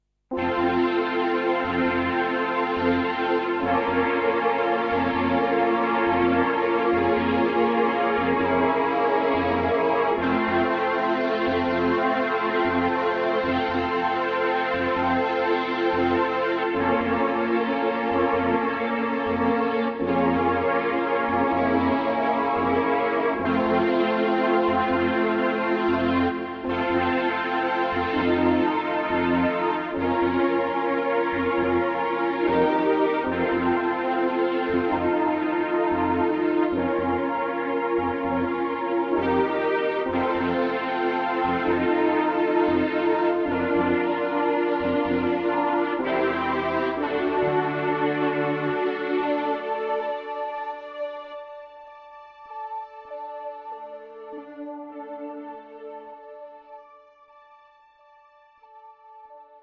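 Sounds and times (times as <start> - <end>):
Korg 05RW synthesizer: 0.0 - 59.6.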